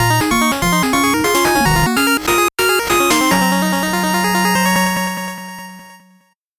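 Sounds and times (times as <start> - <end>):
8-bit jingle: 0.0 - 5.3.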